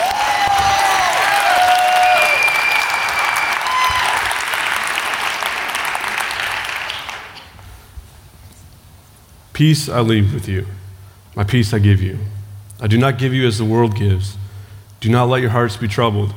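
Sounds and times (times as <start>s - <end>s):
whistles and cheers: 0.0s - 7.3s
audience applause welcoming a speaker: 0.0s - 7.6s
speech: 9.6s - 10.8s, 11.4s - 14.4s, 15.0s - 16.3s.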